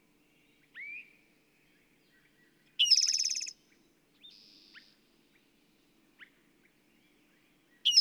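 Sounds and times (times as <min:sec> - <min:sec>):
bird rapid even trill of high notes: 0:02.8 - 0:03.5.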